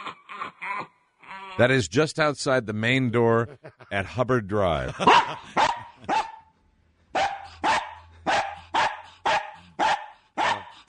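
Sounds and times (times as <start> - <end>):
speech: 1.6 - 5.7
beagle barking: 5.0 - 6.5, 7.2 - 10.8.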